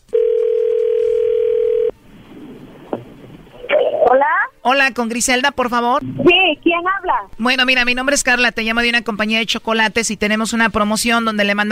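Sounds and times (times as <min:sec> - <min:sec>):
telephone dial tone: 0:00.1 - 0:01.9
faint telephone line noise: 0:01.9 - 0:09.5
speech: 0:04.7 - 0:11.6.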